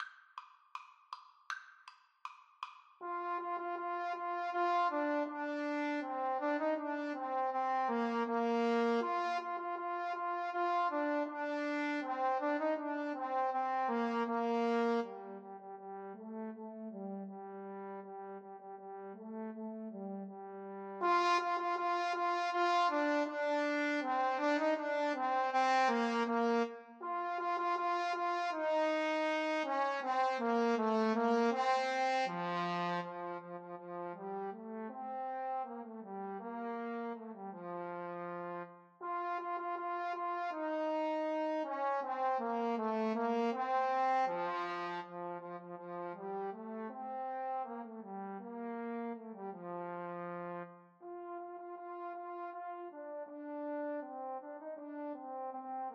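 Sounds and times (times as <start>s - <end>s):
trombone duet: 3.0s - 18.2s, 19.1s - 55.9s.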